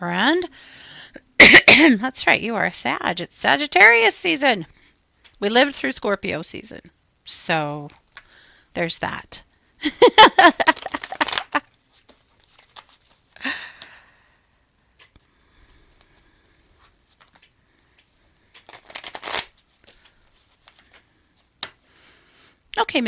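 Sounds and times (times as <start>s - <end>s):
speech: 0.0s - 4.8s, 5.4s - 8.0s, 8.8s - 10.8s
tarot cards shuffling for a reading: 10.5s - 13.4s, 15.9s - 21.8s.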